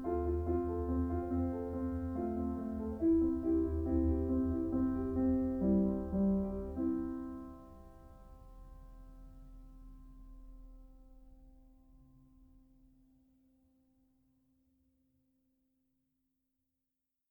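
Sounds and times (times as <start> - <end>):
piano: 0.0 - 13.4.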